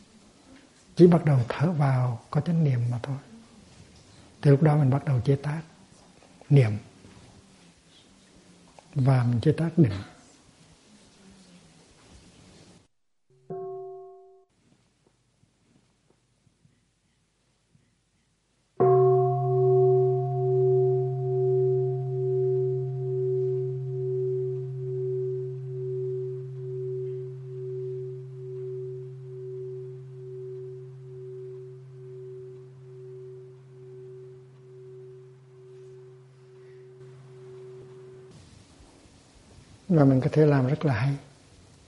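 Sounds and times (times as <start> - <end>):
speech: 1.0 - 3.3, 4.4 - 5.7, 6.5 - 6.9, 9.0 - 10.1, 40.0 - 41.3
meditation bell ringing: 13.3 - 14.5, 18.8 - 38.4.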